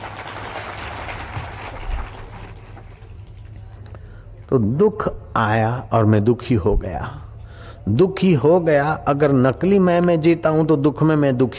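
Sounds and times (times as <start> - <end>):
audience clapping: 0.0 - 3.6
speech: 4.5 - 7.2, 7.8 - 11.5.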